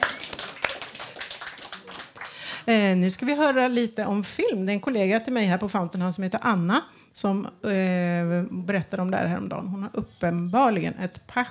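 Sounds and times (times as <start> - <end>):
applause: 0.0 - 2.7
speech: 2.7 - 11.4.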